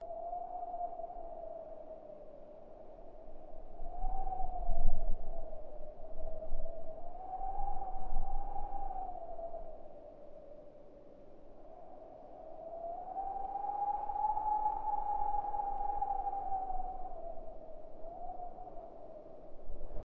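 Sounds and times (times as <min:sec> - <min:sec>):
winter wind: 0:00.0 - 0:20.0.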